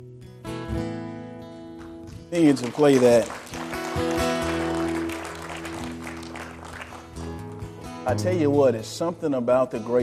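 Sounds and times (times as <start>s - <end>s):
hand clap: 1.7s - 8.0s
speech: 2.3s - 4.1s, 8.1s - 10.0s.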